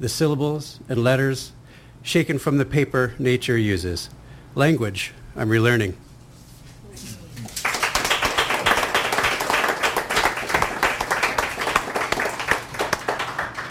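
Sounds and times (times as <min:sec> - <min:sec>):
speech: 0:00.0 - 0:06.1
audience applause: 0:07.5 - 0:13.7.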